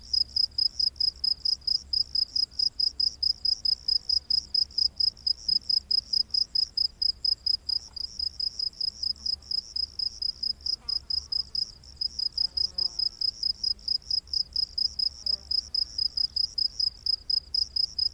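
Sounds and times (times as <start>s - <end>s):
cricket chirps: 0.0s - 18.1s
faint insect buzzing: 1.4s - 18.1s.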